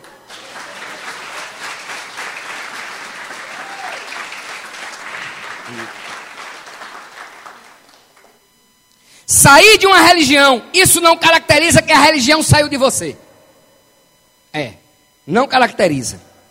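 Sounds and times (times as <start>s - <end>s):
audience applauding: 0.0s - 8.4s
speech: 5.7s - 6.0s, 9.4s - 13.2s, 14.6s - 16.3s.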